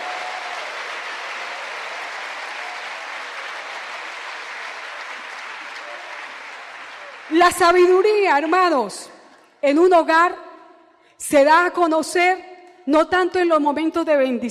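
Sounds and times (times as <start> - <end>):
audience applause: 0.0 - 8.6
speech: 7.3 - 10.4, 11.2 - 14.4.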